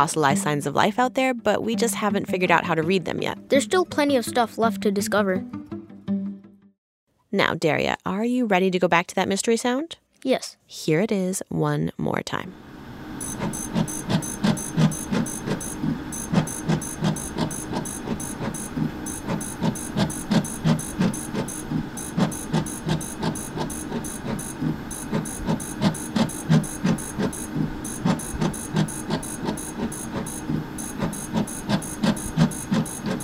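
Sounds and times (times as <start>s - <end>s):
speech: 0.0s - 5.7s, 7.3s - 12.7s
fluorescent plate reader running: 13.2s - 33.2s.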